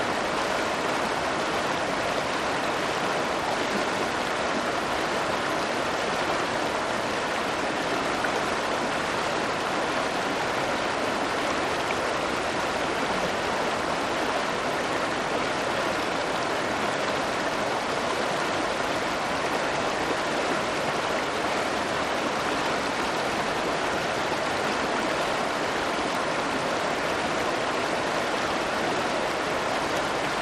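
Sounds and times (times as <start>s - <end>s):
medium river flowing: 0.0s - 30.3s.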